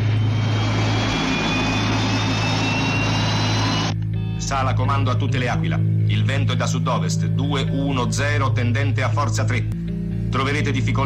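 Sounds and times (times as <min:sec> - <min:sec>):
aircraft engines during takeoff: 0:00.0 - 0:04.0
speech: 0:04.5 - 0:11.0.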